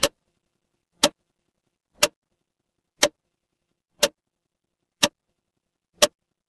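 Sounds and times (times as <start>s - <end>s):
mechanical clock ticking: 0.0s - 0.2s, 0.9s - 1.3s, 1.9s - 2.3s, 3.0s - 3.2s, 3.9s - 4.2s, 4.9s - 5.2s, 6.0s - 6.2s.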